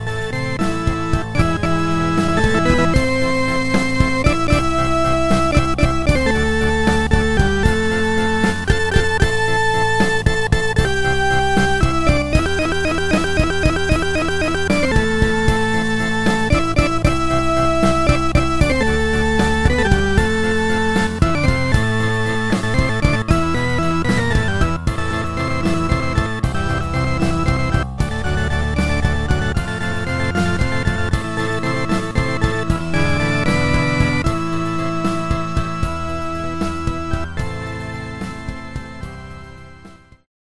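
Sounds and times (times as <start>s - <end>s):
Elka Panther transistor combo organ: 0.0s - 40.3s.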